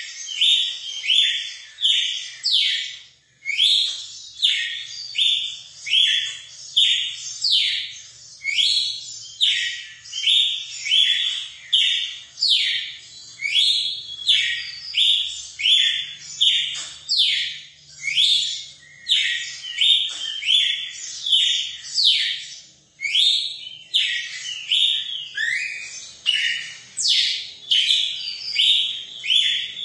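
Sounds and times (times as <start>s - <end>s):
red-cowled cardinal song: 0.0s - 29.8s.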